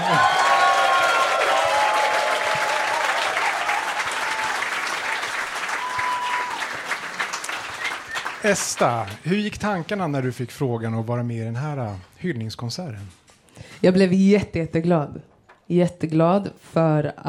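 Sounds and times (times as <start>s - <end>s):
audience applause: 0.0s - 9.8s
speech: 8.4s - 13.2s, 13.8s - 17.2s.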